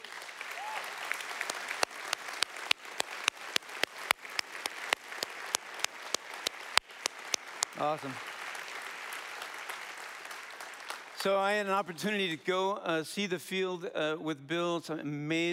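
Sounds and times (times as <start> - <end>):
round of applause: 0.0 - 11.9
speech: 7.8 - 8.3, 11.2 - 15.5.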